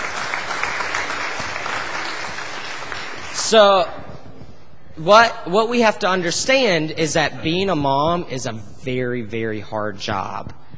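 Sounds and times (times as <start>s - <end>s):
round of applause: 0.0s - 3.6s
speech: 3.5s - 4.0s, 5.0s - 10.6s.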